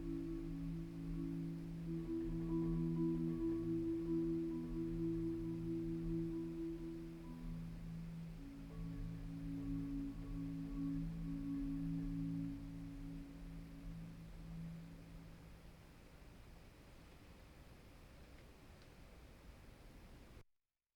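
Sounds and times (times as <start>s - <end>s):
marimba rhapsody: 0.0s - 15.5s.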